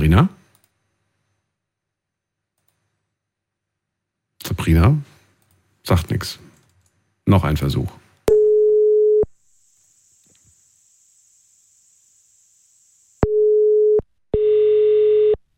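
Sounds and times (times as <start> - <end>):
speech: 0.1 - 0.4, 4.7 - 5.1, 5.9 - 6.5, 7.3 - 8.0
telephone ringing tone: 8.3 - 9.3, 13.2 - 15.4.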